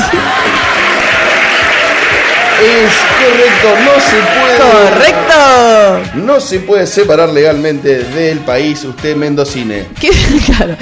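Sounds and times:
laughter: 0.0s - 1.8s, 10.0s - 10.8s
applause sound effect: 0.0s - 6.1s
speech: 2.6s - 10.8s.

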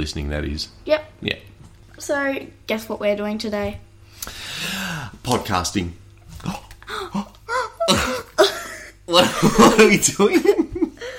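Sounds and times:
speech: 0.0s - 4.4s, 5.2s - 6.6s, 9.1s - 10.7s
person burping: 6.3s - 9.8s
laughter: 9.1s - 11.0s.

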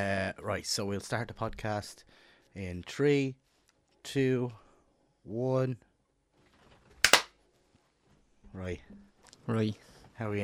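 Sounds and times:
speech: 0.0s - 3.4s, 4.0s - 4.6s, 5.2s - 5.9s, 8.5s - 10.4s
hand claps to start recording: 7.0s - 7.3s.

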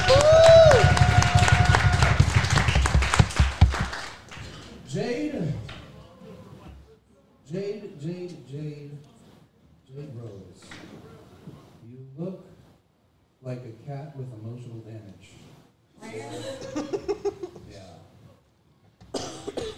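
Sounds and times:
audience applause: 0.0s - 4.8s
laughter: 16.3s - 17.8s.

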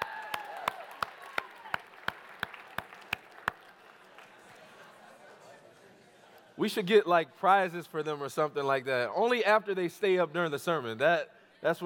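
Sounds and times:
audience clapping: 0.0s - 4.8s
speech: 6.6s - 11.8s.

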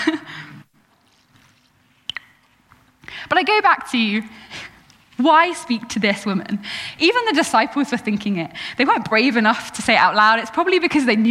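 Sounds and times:
speaker drinking water: 0.8s - 3.1s
speech: 3.3s - 4.5s, 5.2s - 11.2s.

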